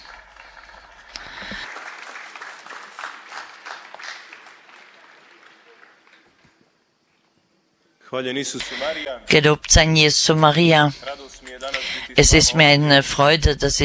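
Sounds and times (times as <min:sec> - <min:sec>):
audience applause: 0:00.0 - 0:06.8
speech: 0:08.1 - 0:11.1, 0:11.8 - 0:13.8.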